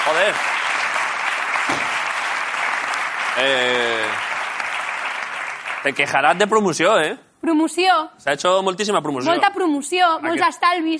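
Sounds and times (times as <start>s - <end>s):
audience applause: 0.0s - 6.5s
speech: 0.1s - 0.5s, 3.4s - 4.3s, 5.8s - 10.9s.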